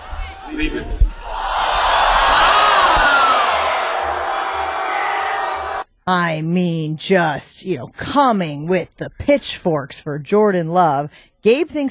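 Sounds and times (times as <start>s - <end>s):
crowd cheering and yelling: 0.0s - 5.8s
speech: 0.5s - 1.4s, 6.1s - 11.8s.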